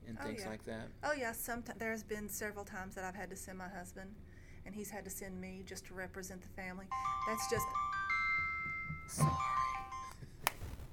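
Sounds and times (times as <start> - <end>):
speech: 0.2 - 7.8, 9.1 - 9.6
cell phone ringing with a soft electronic ringtone: 6.9 - 10.2.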